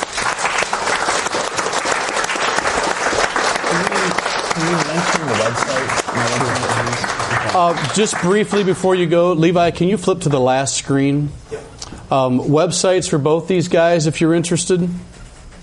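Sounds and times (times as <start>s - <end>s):
audience applause: 0.0s - 8.9s
speech: 7.6s - 11.5s, 12.1s - 15.2s.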